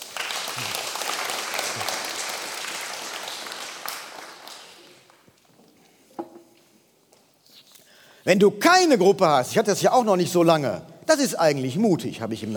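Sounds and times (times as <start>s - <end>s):
audience applause: 0.0s - 5.3s
speech: 0.6s - 0.8s, 8.2s - 12.5s.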